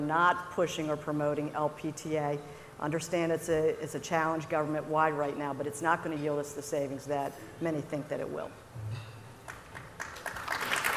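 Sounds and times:
speech: 0.0 - 8.9
audience applause at a government procurement discussion: 9.5 - 10.9.

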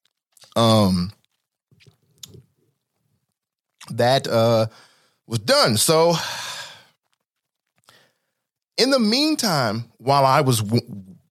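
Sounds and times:
person taking a drink: 0.3 - 2.5
speech: 0.6 - 1.2, 3.9 - 6.5, 8.8 - 11.1.

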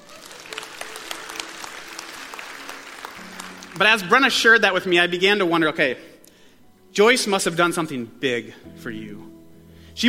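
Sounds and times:
audience applause: 0.0 - 4.2
speech: 3.8 - 6.1, 7.0 - 9.3.

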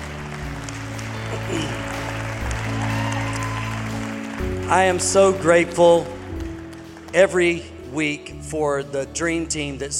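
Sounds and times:
church congregation applauding to welcome families: 0.0 - 7.9
speech: 4.7 - 6.2, 7.1 - 9.9.

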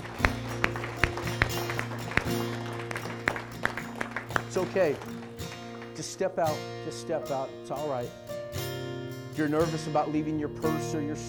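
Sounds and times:
scattered audience hand claps: 0.0 - 6.6
steady sustained keyboard chords: 0.0 - 11.2
speech: 4.5 - 5.2, 6.0 - 8.3, 9.4 - 11.2.

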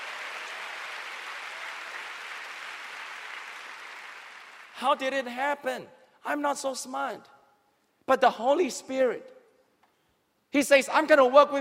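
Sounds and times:
audience clapping and applauding: 0.0 - 5.0
speech: 4.8 - 7.3, 8.1 - 9.4, 10.5 - 11.5.

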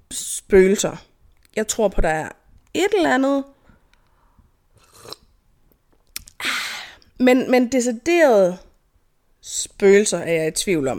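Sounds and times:
speech: 0.5 - 3.6, 7.2 - 8.7, 9.4 - 10.9
person sipping coffee: 4.7 - 5.4.

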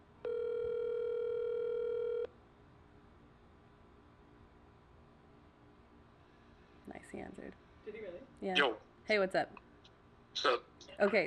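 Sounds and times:
phone call ringing on speakerphone: 0.2 - 2.3
speech: 7.1 - 9.6, 10.4 - 11.2.

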